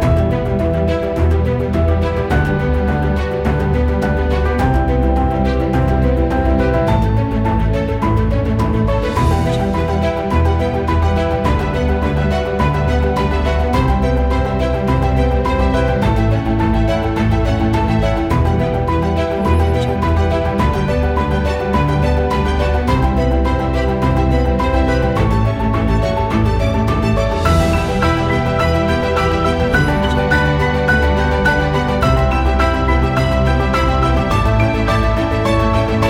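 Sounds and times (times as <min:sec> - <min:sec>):
emotional piano: 0:00.0 - 0:36.0.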